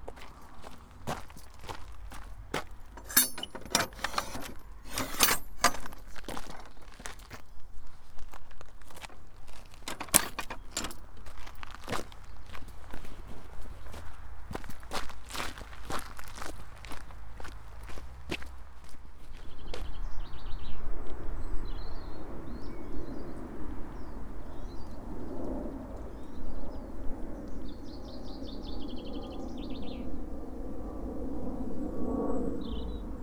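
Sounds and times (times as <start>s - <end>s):
wind: 0.0s - 33.2s
footsteps crunching along a path on the East Devon Way: 5.9s - 20.0s.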